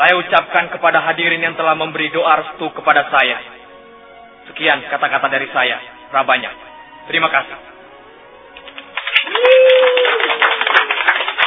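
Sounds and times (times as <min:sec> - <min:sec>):
speech: 0:00.0 - 0:03.6, 0:04.5 - 0:07.7
audience clapping: 0:08.6 - 0:11.4.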